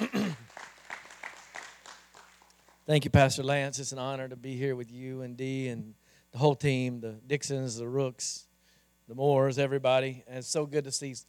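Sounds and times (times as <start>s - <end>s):
audience applauding at a church service: 0.0s - 2.9s
speech: 2.9s - 8.5s, 9.1s - 11.2s.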